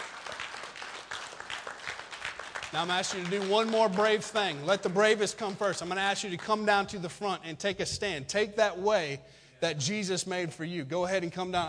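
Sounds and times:
audience applause: 0.0s - 4.7s
speech: 2.7s - 11.6s.

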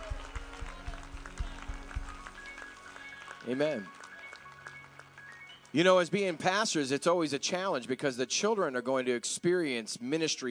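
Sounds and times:
audience applause: 0.0s - 6.6s
speech: 3.4s - 4.0s, 5.7s - 10.4s.

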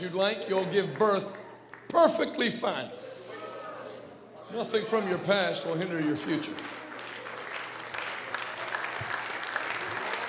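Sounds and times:
audience clapping: 0.0s - 2.5s, 5.8s - 10.2s
speech: 0.0s - 3.2s, 4.5s - 6.8s.

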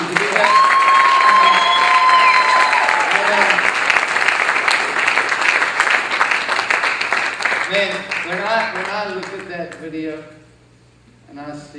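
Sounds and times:
crowd cheering with whoops and shouts: 0.0s - 8.6s
crowd clapping: 0.0s - 9.9s
speech: 9.6s - 10.4s, 11.3s - 11.7s.

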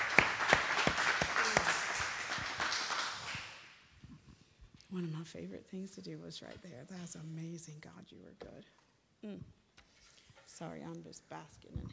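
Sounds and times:
audience clapping hands in praise: 0.0s - 3.8s
speech: 5.0s - 9.6s, 10.6s - 11.9s.

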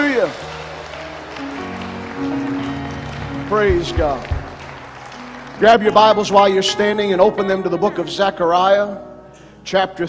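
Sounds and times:
church congregation clapping a hand clap of praise: 0.0s - 7.4s
speech: 0.2s - 0.6s, 3.5s - 4.4s, 5.6s - 10.0s.

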